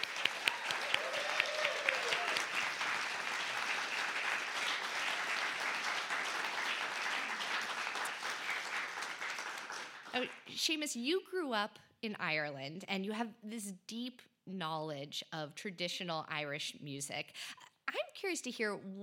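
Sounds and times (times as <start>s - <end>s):
crowd clapping for musicians: 0.0s - 10.5s
speech: 10.2s - 17.6s, 18.2s - 19.0s.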